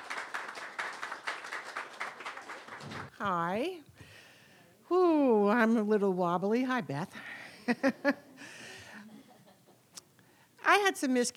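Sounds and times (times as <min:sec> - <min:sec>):
audience applause after a performer leaves the stage: 0:00.0 - 0:03.1
speech: 0:02.9 - 0:04.0, 0:04.9 - 0:08.3, 0:10.8 - 0:11.3.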